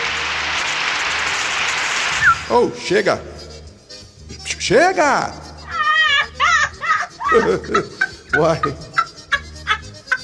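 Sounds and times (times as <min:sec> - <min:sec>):
audience applause: 0:00.0 - 0:02.5
speech: 0:02.5 - 0:03.3, 0:04.6 - 0:05.4, 0:07.3 - 0:08.9
laughter: 0:05.4 - 0:10.2.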